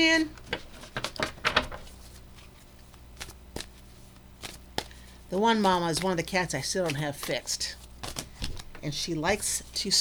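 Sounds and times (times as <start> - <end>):
speech: 0.0 - 0.6, 5.3 - 7.8, 8.8 - 9.9
tarot cards being handled and shuffled: 0.4 - 9.9.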